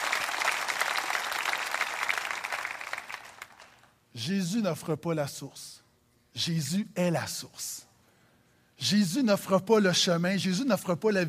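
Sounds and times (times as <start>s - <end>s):
audience applause: 0.0s - 3.9s
speech: 4.2s - 5.8s, 6.4s - 7.9s, 8.8s - 11.2s.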